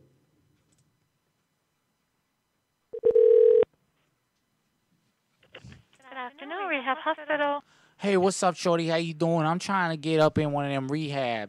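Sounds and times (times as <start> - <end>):
telephone number being dialed: 3.0 - 3.6
speech: 6.4 - 11.4.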